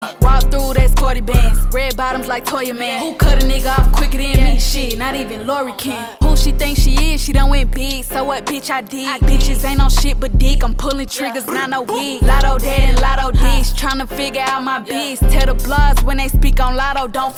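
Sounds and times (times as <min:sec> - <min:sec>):
beatbox: 0:00.0 - 0:05.4, 0:06.2 - 0:17.3.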